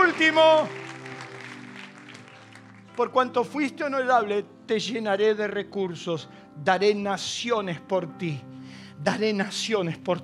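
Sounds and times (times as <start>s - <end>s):
audience applauding: 0.0s - 3.3s
speech: 0.2s - 0.8s, 3.0s - 10.2s.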